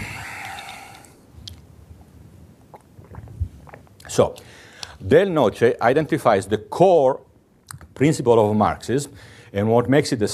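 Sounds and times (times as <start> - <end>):
person sipping water: 0.0 - 1.6, 2.6 - 5.0
speech: 4.2 - 7.2, 8.0 - 10.3.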